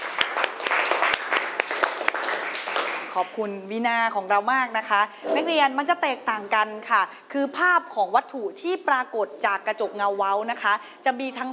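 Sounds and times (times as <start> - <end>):
classroom applause for the second group: 0.0 - 3.4
speech: 3.2 - 11.5.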